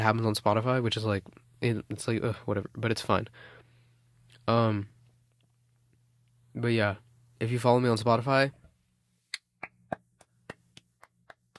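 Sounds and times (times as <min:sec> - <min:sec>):
speech: 0:00.0 - 0:03.6, 0:04.5 - 0:04.9, 0:06.6 - 0:08.6
low steady hum: 0:00.0 - 0:11.5
hands clapping: 0:09.4 - 0:11.5.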